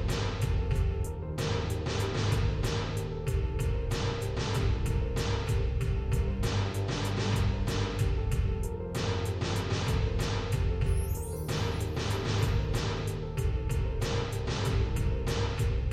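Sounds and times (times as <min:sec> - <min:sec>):
ambient music: 0:00.0 - 0:15.9.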